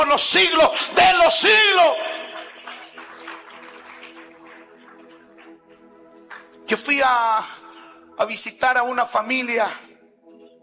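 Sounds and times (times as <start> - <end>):
speech: 0.1 - 2.2, 6.7 - 7.6, 8.2 - 9.9
audience applauding: 1.2 - 6.7.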